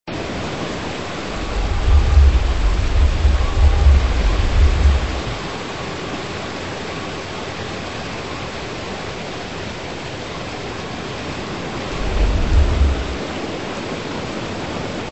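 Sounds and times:
earthquake soundscape: 1.1 - 5.8, 11.9 - 13.5.

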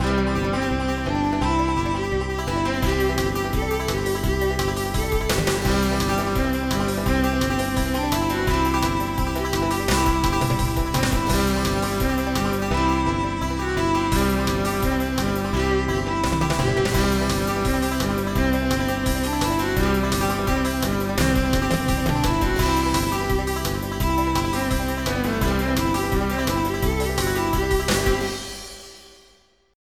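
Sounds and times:
bluegrass music: 0.0 - 28.6.

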